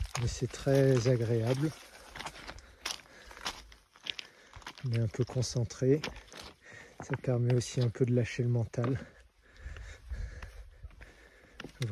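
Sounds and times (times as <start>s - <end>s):
gritty gravel noise: 0.0s - 9.0s
hiker in sandals walking on a rocky trail on Corsica's GR20: 0.0s - 11.9s
speech: 0.2s - 2.0s, 4.8s - 6.2s, 7.0s - 9.2s.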